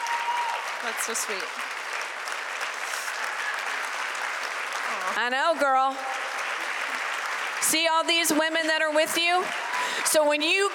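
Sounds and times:
audience applause at a talk on women in sports: 0.0s - 10.7s
speech: 0.2s - 1.7s, 5.1s - 6.1s, 7.6s - 10.7s.

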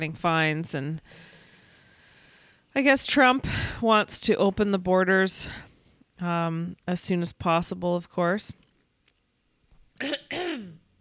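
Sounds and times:
speech: 0.0s - 1.3s, 2.8s - 8.6s, 10.0s - 10.2s
person coughing after saliva went down the wrong way: 10.0s - 10.9s.

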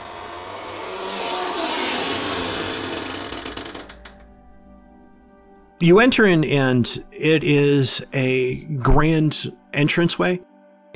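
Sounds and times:
large door opening with long creak: 0.0s - 5.1s
speech: 5.8s - 10.9s.

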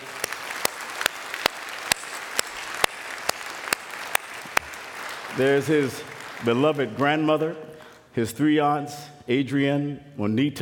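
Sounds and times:
audience applause: 0.0s - 7.2s
speech: 5.4s - 10.6s.

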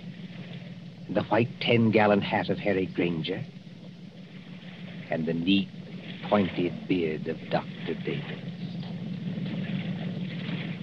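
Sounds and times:
motorboat engine droning on the water: 0.0s - 10.8s
speech: 1.1s - 3.6s, 5.1s - 8.5s.

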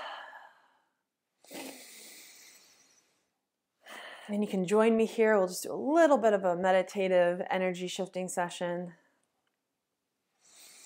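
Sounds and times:
deep breath: 0.0s - 4.3s, 10.4s - 10.8s
speech: 4.3s - 9.0s.

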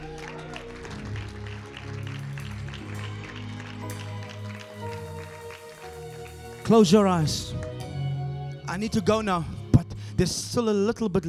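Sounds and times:
audience clapping: 0.0s - 8.4s
low keyboard or organ chords: 0.0s - 11.2s
speech: 6.7s - 7.6s, 8.8s - 9.6s, 10.2s - 11.2s.

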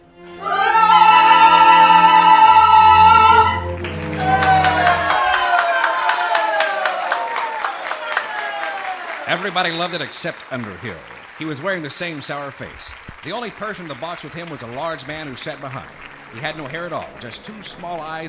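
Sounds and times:
sustained musical chord: 0.0s - 6.3s, 14.4s - 18.2s
theater audience clapping and cheering: 0.4s - 18.2s
speech: 9.5s - 18.2s.

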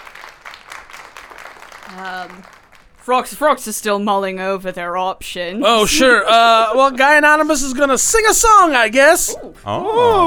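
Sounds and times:
soft scattered clapping from a small group: 0.0s - 3.1s
speech: 1.9s - 10.2s.

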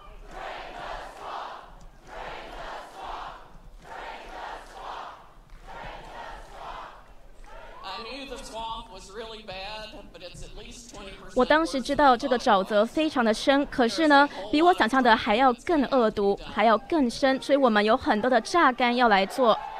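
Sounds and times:
crowd chanting a slogan: 0.0s - 7.9s
speech: 8.4s - 19.7s.

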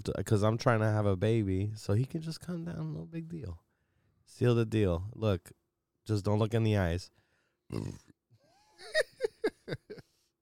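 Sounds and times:
speech: 0.0s - 3.6s, 4.3s - 8.1s, 9.7s - 10.0s
person burping: 7.7s - 8.2s.

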